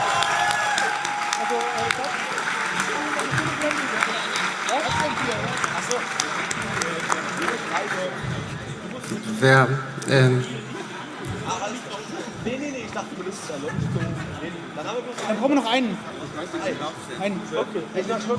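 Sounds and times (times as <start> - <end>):
audience applause at a live team presentation event: 0.0 - 8.8
speech: 9.4 - 10.6, 13.5 - 18.3
laughter: 10.6 - 15.0.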